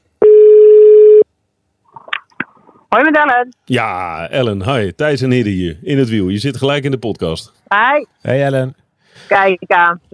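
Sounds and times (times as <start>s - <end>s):
loud steady single-pitch telephone line tone: 0.2s - 1.2s
speech: 2.9s - 10.1s.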